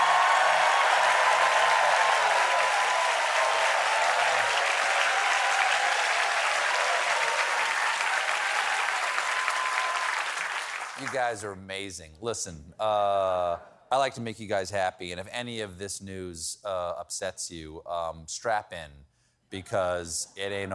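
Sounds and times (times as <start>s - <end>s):
studio audience applause: 0.0s - 11.4s
speech: 11.1s - 20.7s.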